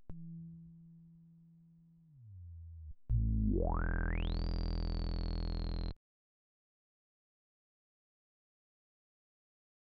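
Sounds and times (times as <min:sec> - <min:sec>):
resonant filtered saw synth bass: 0:02.1 - 0:05.9.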